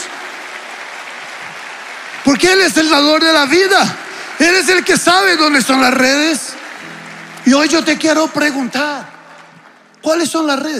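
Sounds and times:
audience applause: 0.0 - 10.7
speech: 2.2 - 6.5, 7.4 - 9.1, 10.0 - 10.7.

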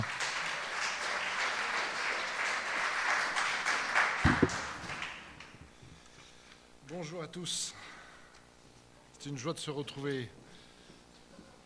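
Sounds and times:
crowd applauding: 0.0 - 5.6
speech: 7.0 - 7.9, 9.2 - 10.4.

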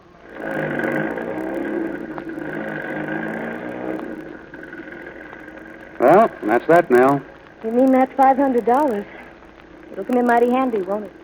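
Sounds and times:
truck towing a horse trailer driving off: 0.0 - 11.2
speech: 6.4 - 9.2, 9.9 - 11.2.

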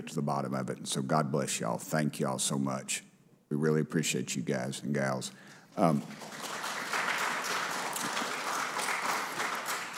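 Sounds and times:
speech: 0.0 - 6.6
audience clapping: 5.8 - 9.9.

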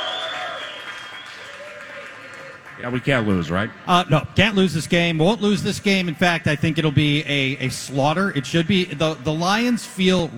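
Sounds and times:
high whistles: 0.0 - 2.0
steady applause: 0.0 - 3.3
crowd roaring with a raucous cheer: 0.0 - 10.3
speech: 2.8 - 10.3.

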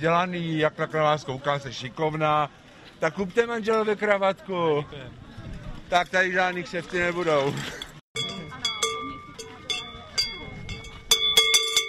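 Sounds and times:
speech: 0.0 - 5.2, 5.9 - 7.8
bell of carnival procession horse figure: 8.2 - 11.8.

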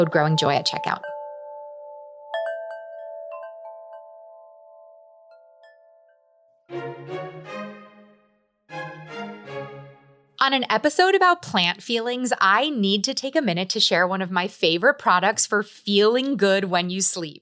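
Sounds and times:
speech: 0.0 - 1.1, 10.4 - 17.4
wind chime ringing outside a window: 0.0 - 6.2.

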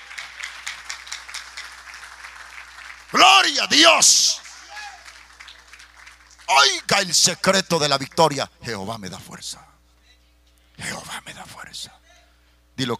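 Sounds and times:
audience applauding: 0.0 - 8.4
speech: 3.1 - 4.4, 6.5 - 9.8, 10.8 - 12.0, 12.8 - 12.9
loud voice shouting over the crowd: 3.2 - 5.0, 6.5 - 7.4.

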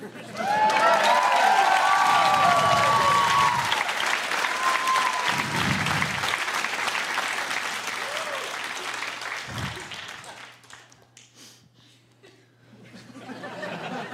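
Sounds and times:
audience applause: 0.0 - 11.2
laughter: 12.2 - 14.1.

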